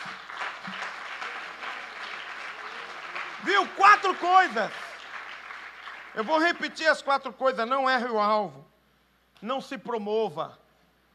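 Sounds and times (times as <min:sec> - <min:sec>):
audience applauding: 0:00.0 - 0:07.1
speech: 0:03.4 - 0:04.8, 0:06.2 - 0:08.7, 0:09.4 - 0:10.6.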